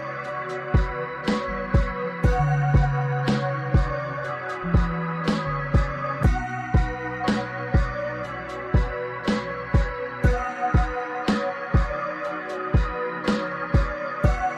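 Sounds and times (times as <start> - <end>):
lofi beat: 0.0 - 14.5.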